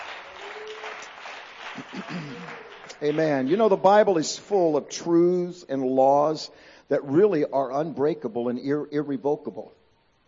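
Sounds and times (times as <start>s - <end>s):
audience clapping: 0.0s - 4.0s
speech: 3.0s - 10.2s.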